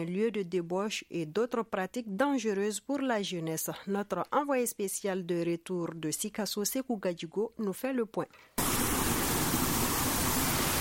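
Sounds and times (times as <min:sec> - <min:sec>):
speech: 0:00.0 - 0:08.8
water cascading down the Farako waterfalls near Sikasso: 0:08.6 - 0:10.7.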